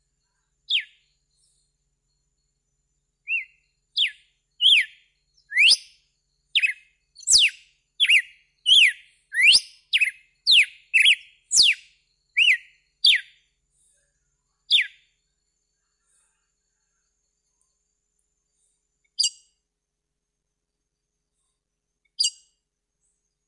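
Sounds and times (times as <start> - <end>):
red-cowled cardinal whistled song: 3.3 - 13.4, 14.7 - 15.0.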